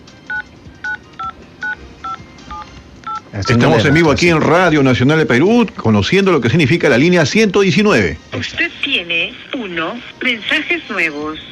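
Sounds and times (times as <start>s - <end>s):
telephone keypad tones while dialing a phone number: 0.3s - 3.2s
speech: 3.3s - 11.5s.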